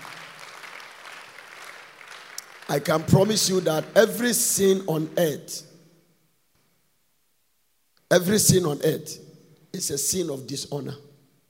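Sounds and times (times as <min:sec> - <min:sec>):
Christians clapping for Jesus: 0:00.0 - 0:03.9
speech: 0:02.7 - 0:05.7, 0:08.1 - 0:11.1.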